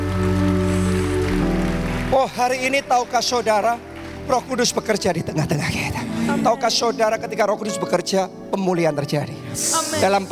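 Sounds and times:
crowd clapping: 0.0s - 6.3s
sustained keyboard chords: 0.0s - 10.2s
speech: 2.2s - 10.2s.

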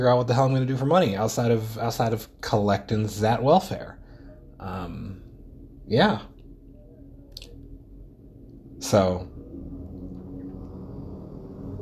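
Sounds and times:
speech: 0.0s - 4.0s, 4.6s - 5.2s, 5.9s - 6.3s, 8.8s - 9.3s
bus going by: 7.5s - 11.8s.

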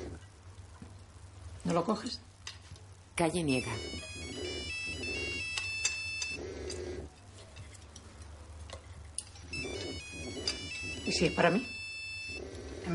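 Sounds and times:
speech: 1.6s - 2.3s, 3.2s - 4.2s, 11.1s - 11.8s
mobile phone vibrating: 3.6s - 7.0s, 9.5s - 12.9s.

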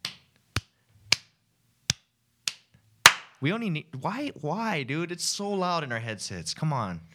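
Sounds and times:
hand claps to sync cameras: 1.9s - 3.4s
speech: 3.4s - 7.1s.

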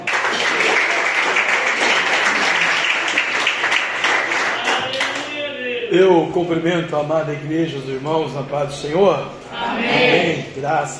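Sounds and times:
audience applauding: 0.0s - 5.4s
speech: 5.9s - 10.9s.

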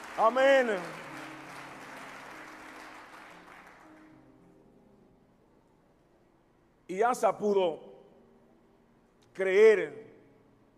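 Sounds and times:
audience clapping applause: 0.0s - 4.2s
speech: 0.2s - 1.0s, 6.9s - 7.9s, 9.4s - 10.1s.

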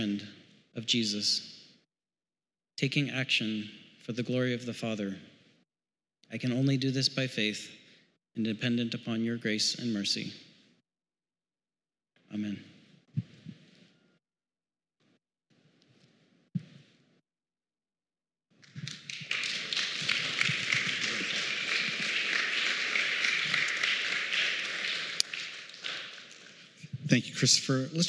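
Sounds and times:
speech: 0.0s - 1.5s, 2.8s - 5.3s, 6.3s - 7.8s, 8.4s - 10.4s, 12.3s - 13.3s, 27.1s - 28.0s
crowd applause: 18.8s - 26.8s.

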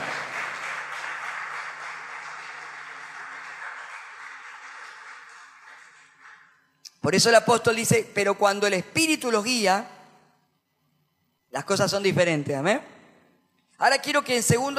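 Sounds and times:
audience applause: 0.0s - 6.6s
speech: 7.0s - 10.0s, 11.6s - 12.9s, 13.8s - 14.7s.

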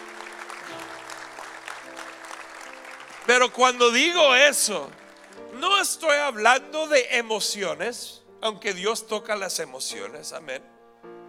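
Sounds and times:
audience applause: 0.0s - 5.8s
speech: 3.3s - 5.0s, 5.6s - 10.7s.

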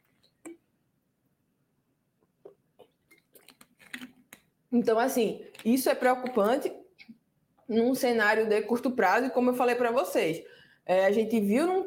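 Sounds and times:
person sipping water and swallowing: 2.2s - 4.5s
speech: 4.7s - 6.8s, 7.7s - 11.8s.

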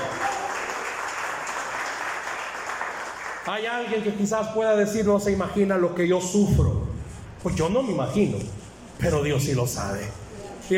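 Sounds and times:
crowd applauding: 0.0s - 3.6s
speech: 3.4s - 6.8s, 7.4s - 10.7s.

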